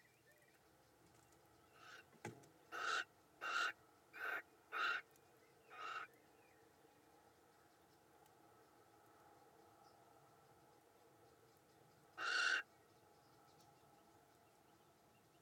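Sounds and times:
little owl contact calls in a nestbox: 0:02.7 - 0:05.1, 0:05.7 - 0:06.2, 0:12.2 - 0:12.7.

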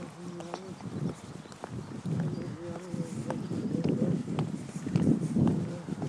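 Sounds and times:
birds chirping: 0:00.0 - 0:04.8
faint voices: 0:00.0 - 0:06.0
footsteps of people walking outdoors beside a river at twilight: 0:00.0 - 0:06.0.

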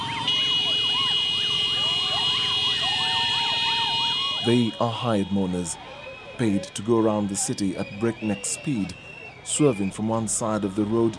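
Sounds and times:
motorcyclists' horns blaring: 0:00.3 - 0:05.4
motorcyclists' loud whistles: 0:00.3 - 0:05.4, 0:07.4 - 0:10.3
speech: 0:04.4 - 0:11.1.

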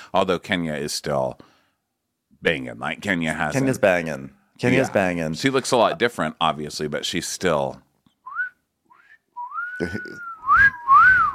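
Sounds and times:
speech: 0:00.1 - 0:01.5, 0:02.4 - 0:07.9, 0:09.8 - 0:10.8
catcall wolf whistles: 0:08.3 - 0:11.3.

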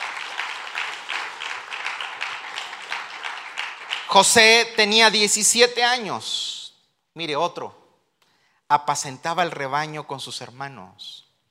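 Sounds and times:
audience applause: 0:00.0 - 0:04.4
speech: 0:04.1 - 0:06.5, 0:07.2 - 0:07.8, 0:08.7 - 0:11.2.

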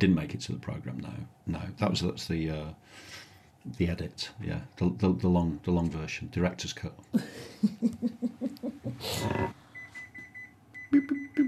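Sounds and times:
speech: 0:00.0 - 0:08.4, 0:09.0 - 0:09.6, 0:10.9 - 0:11.4
oven timer beeping as the biscuits finish baking: 0:09.8 - 0:11.4.

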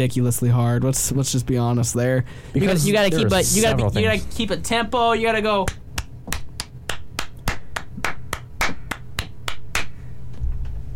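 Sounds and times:
speech: 0:00.0 - 0:05.8
hand clapping as a drum beat: 0:05.6 - 0:10.1.

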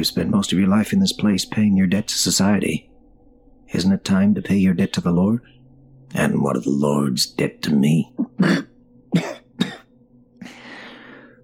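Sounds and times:
speech: 0:00.0 - 0:02.9, 0:03.7 - 0:09.3
wet coughing fit: 0:08.1 - 0:09.9.

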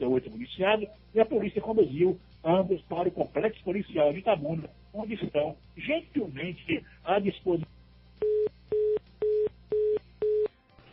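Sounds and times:
speech: 0:00.0 - 0:09.0
telephone busy tone after a dropped call: 0:08.2 - 0:10.5.

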